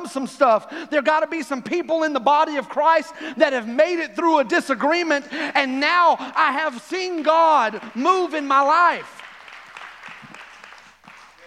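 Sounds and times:
speech: 0.0s - 9.2s
audience clapping: 6.0s - 11.4s.

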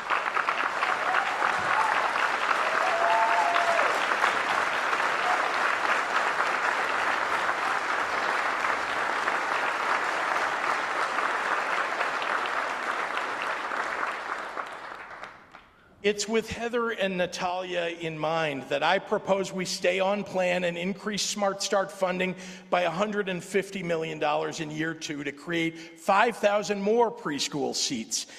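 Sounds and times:
large audience applause: 0.0s - 15.6s
speech: 16.1s - 28.3s.

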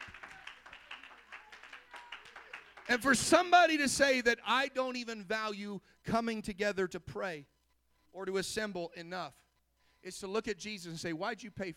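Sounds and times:
audience clapping: 0.0s - 3.4s
speech: 2.9s - 7.5s, 8.1s - 9.4s, 10.0s - 11.7s.

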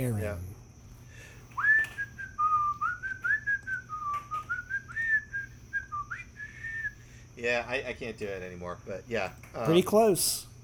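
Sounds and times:
speech: 0.0s - 0.5s, 7.4s - 10.5s
faint low hum: 0.0s - 10.6s
person whistling outro music melody: 1.6s - 7.0s.

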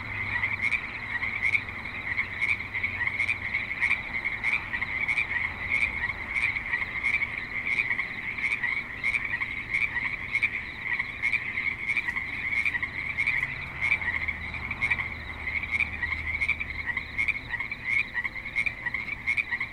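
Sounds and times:
continuous frog chorus croaking: 0.0s - 19.7s.

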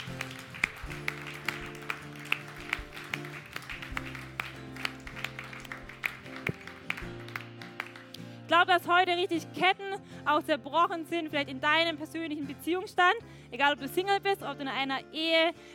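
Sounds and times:
audience applause: 0.0s - 8.2s
speech: 8.5s - 15.7s.

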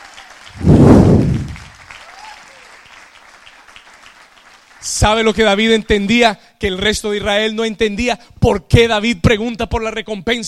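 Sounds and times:
audience applause: 0.0s - 4.8s
speech: 5.0s - 10.4s.

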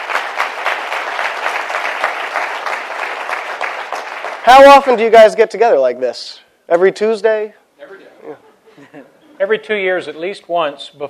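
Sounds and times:
audience applause: 0.0s - 4.9s
speech: 4.5s - 11.0s.

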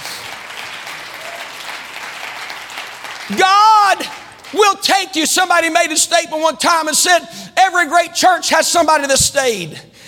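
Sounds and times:
audience clapping hands: 0.0s - 5.7s
speech: 3.3s - 3.6s, 4.5s - 10.0s.

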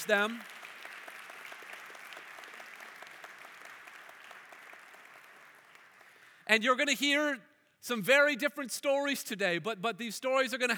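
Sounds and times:
speech: 0.0s - 0.6s, 6.5s - 10.7s
crowd applauding: 0.0s - 6.5s.

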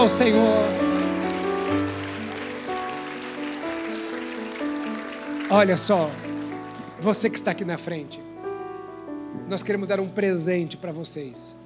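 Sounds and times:
speech: 0.0s - 0.9s, 5.5s - 6.3s, 7.0s - 8.3s, 9.4s - 11.6s
audience applause: 0.0s - 7.6s.

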